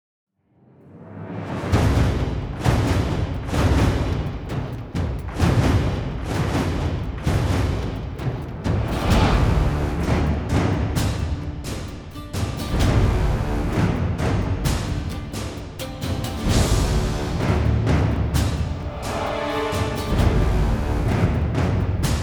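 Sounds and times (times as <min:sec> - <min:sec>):
boss fight music loop: 0:02.2 - 0:22.2.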